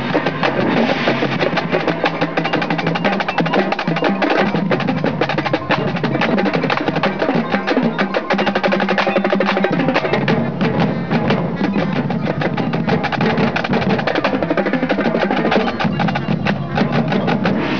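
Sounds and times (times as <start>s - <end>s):
rumba drum break: 0.0s - 17.7s.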